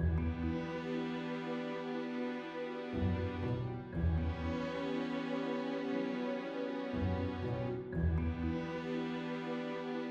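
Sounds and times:
orchestra playing: 0.2 - 10.1.

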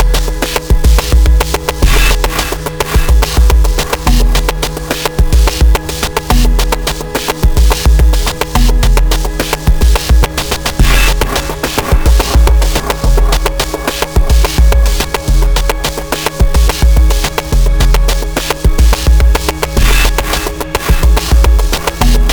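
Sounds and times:
melancholic rhythmic noise: 0.0 - 22.3.

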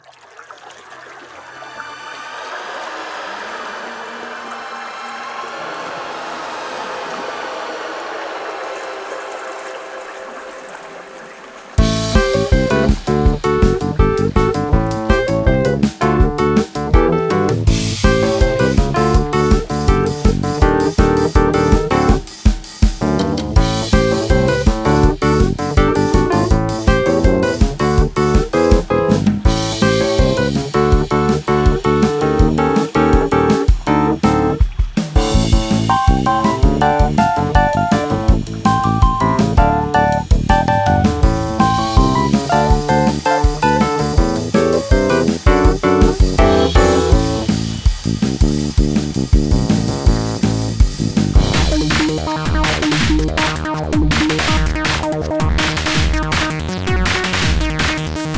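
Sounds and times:
acid funk music: 11.8 - 58.3.

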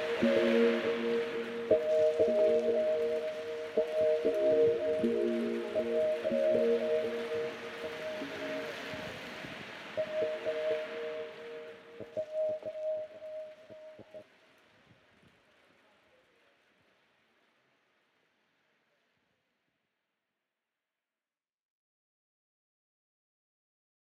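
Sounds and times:
gentle synth: 0.0 - 14.2
rain: 0.0 - 19.2.

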